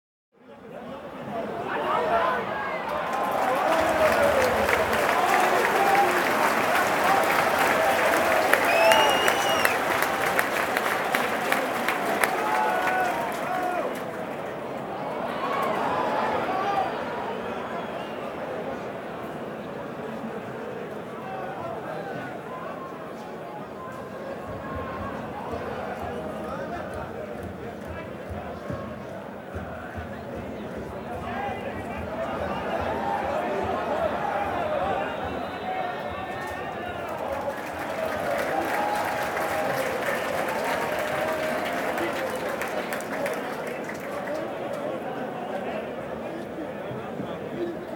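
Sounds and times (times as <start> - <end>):
stadium fans: 0.5 - 47.9
stadium fans clapping: 2.7 - 16.8, 24.4 - 46.0.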